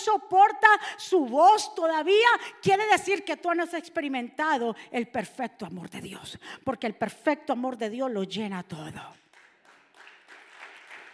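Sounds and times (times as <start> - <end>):
speech: 0.0 - 9.2
crowd applauding: 9.3 - 11.1.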